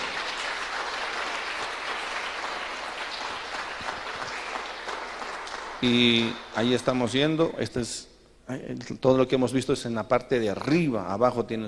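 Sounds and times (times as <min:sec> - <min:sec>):
audience applause: 0:00.0 - 0:06.9
speech: 0:05.8 - 0:11.6.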